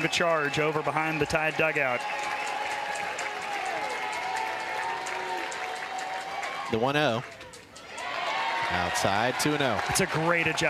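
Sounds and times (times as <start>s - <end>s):
speech: 0.0s - 2.4s, 6.7s - 7.4s, 8.7s - 10.6s
faint whistles or shouts: 0.0s - 2.8s
large stadium crowd cheering and clapping: 0.0s - 10.6s.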